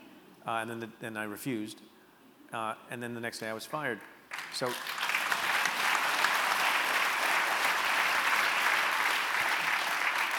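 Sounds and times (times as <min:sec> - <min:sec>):
speech: 0:00.5 - 0:05.0
audience clapping: 0:04.3 - 0:10.3.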